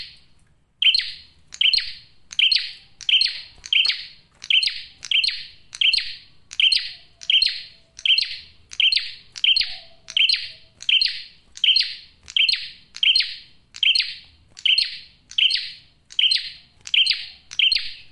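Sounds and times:
male bar-winged prinia singing bright clipped chirps: 0:00.0 - 0:18.1.

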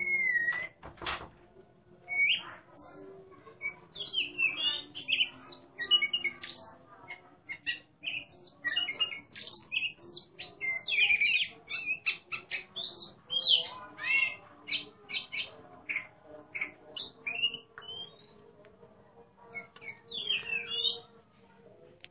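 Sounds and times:
Oriental magpie-robin singing: 0:00.0 - 0:00.9, 0:02.1 - 0:02.7, 0:03.4 - 0:18.4, 0:19.4 - 0:21.2.

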